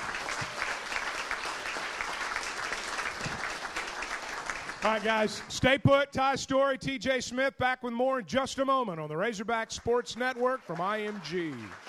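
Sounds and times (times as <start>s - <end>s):
audience round of applause: 0.0s - 5.5s, 10.1s - 11.8s
speech: 4.8s - 11.8s.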